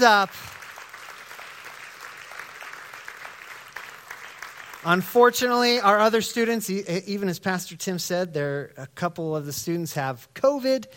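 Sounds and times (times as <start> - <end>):
speech: 0.0 - 0.5, 4.8 - 10.9
audience clapping: 0.0 - 5.8.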